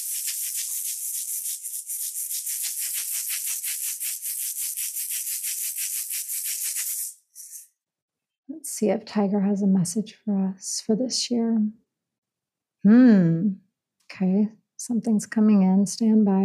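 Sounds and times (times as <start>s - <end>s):
ritual hand rattle being shaken: 0.0s - 7.7s
speech: 8.7s - 11.8s, 12.8s - 13.6s, 14.2s - 16.4s.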